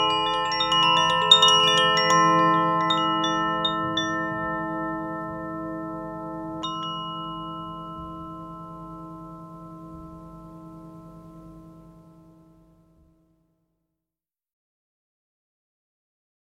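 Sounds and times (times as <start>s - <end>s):
Koshi chime tones: 0.0s - 10.6s.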